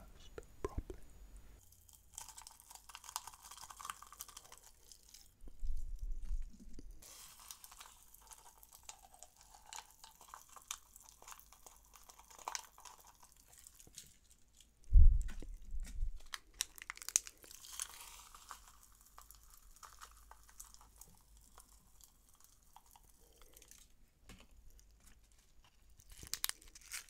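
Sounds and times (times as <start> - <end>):
layered popping candy crackling: 1.6 - 27.0
low thumps: 14.9 - 16.2.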